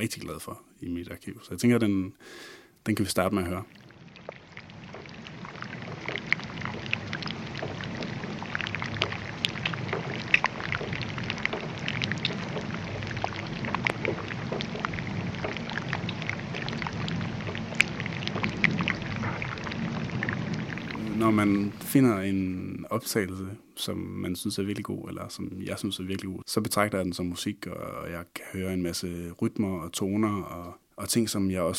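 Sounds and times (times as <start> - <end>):
speech: 0.0 - 3.8, 21.4 - 31.7
low watery rumble: 2.9 - 26.4
pieces of ice melting in a bay crackling and popping: 3.2 - 22.3.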